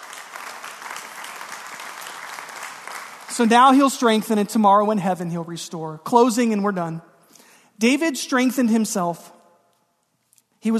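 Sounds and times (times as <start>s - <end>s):
audience clapping: 0.0s - 4.5s
speech: 3.4s - 7.1s, 7.8s - 9.4s.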